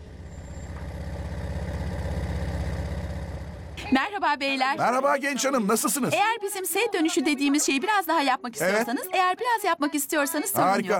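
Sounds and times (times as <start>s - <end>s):
1970 Volkswagen Type 3 engine idling: 0.0s - 3.8s
speech: 3.8s - 10.9s.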